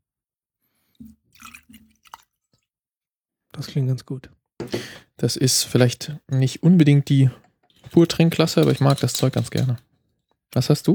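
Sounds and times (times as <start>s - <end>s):
rum being poured from a bottle into a glass: 1.0s - 2.4s
speech: 3.6s - 9.9s, 10.5s - 10.9s.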